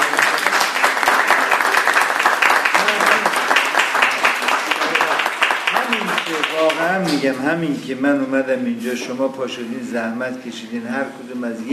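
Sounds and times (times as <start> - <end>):
audience applause: 0.0 - 7.0
speech: 7.0 - 11.7.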